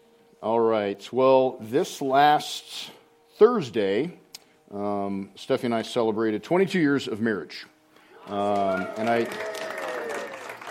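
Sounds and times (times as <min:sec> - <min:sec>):
speech: 0:00.4 - 0:09.5
vocal whoops and cheers: 0:08.1 - 0:10.6
audience applause: 0:08.2 - 0:10.6.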